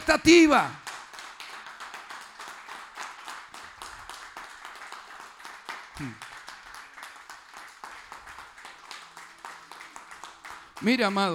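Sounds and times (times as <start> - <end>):
crowd applauding: 0.0 - 11.3
speech: 0.1 - 0.8, 6.0 - 6.2, 10.8 - 11.3.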